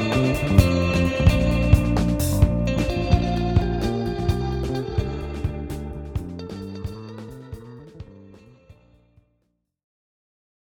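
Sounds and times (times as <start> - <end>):
live natural drums playing: 0.0 - 8.2.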